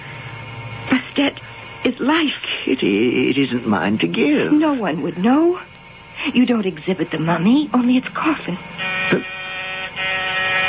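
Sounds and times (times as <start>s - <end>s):
speech: 1.2s - 9.3s
door buzzer: 8.8s - 10.6s.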